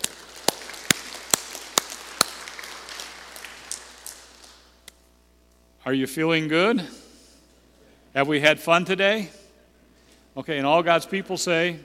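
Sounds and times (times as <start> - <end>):
audience applause: 0.0 - 4.7
speech: 5.9 - 7.0, 8.2 - 9.4, 10.4 - 11.8.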